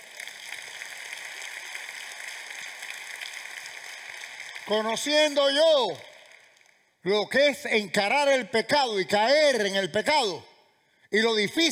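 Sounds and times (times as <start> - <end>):
audience applause: 0.0 - 6.7
speech: 4.7 - 6.1, 7.0 - 10.5, 11.1 - 11.7.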